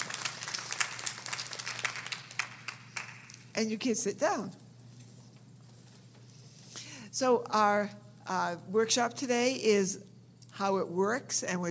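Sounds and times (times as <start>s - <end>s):
audience applauding: 0.0s - 3.4s
speech: 3.6s - 4.6s, 7.2s - 11.6s.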